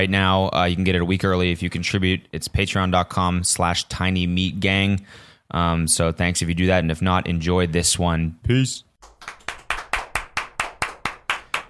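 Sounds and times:
speech: 0.0s - 9.4s
clapping: 9.0s - 11.6s.

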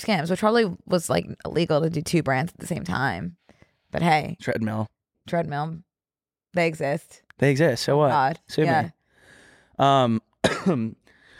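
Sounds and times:
speech: 0.0s - 5.9s, 6.5s - 9.0s, 9.8s - 11.0s
person clearing throat: 10.4s - 11.0s.

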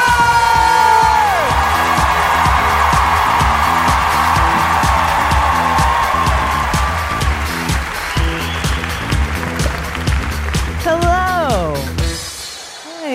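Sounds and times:
whoops: 0.0s - 8.9s
crowd clapping and cheering: 0.0s - 12.8s
thumping rhythmic beat: 0.0s - 13.0s.

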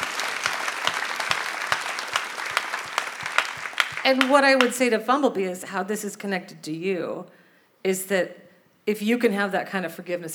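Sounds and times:
audience clapping: 0.0s - 4.8s
speech: 4.1s - 10.3s.

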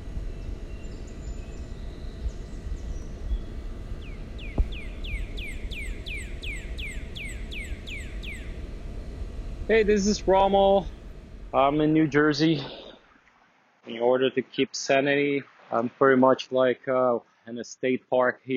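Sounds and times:
birds chirping outside Manhattan apartment: 0.0s - 13.0s
speech: 9.7s - 12.8s, 13.8s - 18.5s.

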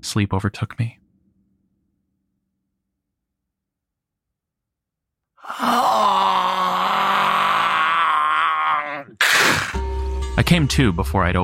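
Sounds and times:
speech: 0.0s - 1.0s, 10.5s - 11.4s
monstrous groans: 5.4s - 9.8s.

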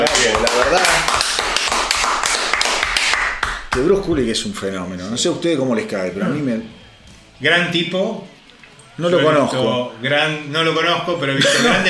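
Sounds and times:
applause: 0.0s - 3.9s
speech: 4.1s - 6.8s, 7.4s - 8.4s, 9.0s - 11.8s
laughter: 11.3s - 11.8s.

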